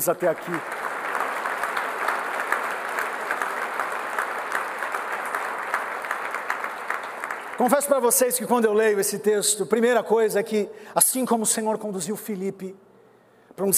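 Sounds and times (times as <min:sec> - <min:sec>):
speech: 0:00.0 - 0:00.9, 0:07.6 - 0:12.9, 0:13.6 - 0:13.7
audience applause: 0:00.0 - 0:08.3.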